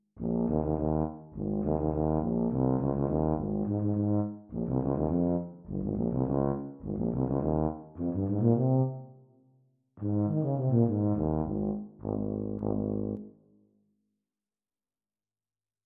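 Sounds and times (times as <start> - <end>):
Bb tuba duet: 0.2 - 9.2, 10.0 - 13.3.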